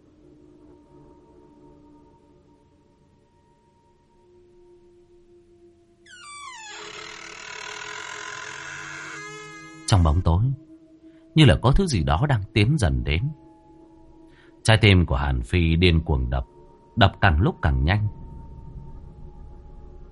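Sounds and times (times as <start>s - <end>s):
door slowly being pushed open, creaking: 6.1s - 10.5s
speech: 9.9s - 10.6s, 11.4s - 13.4s, 14.6s - 18.2s.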